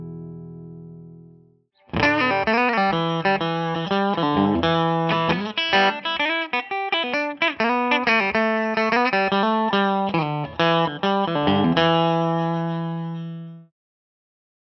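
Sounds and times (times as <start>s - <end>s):
clean musical bridge: 1.9s - 13.6s.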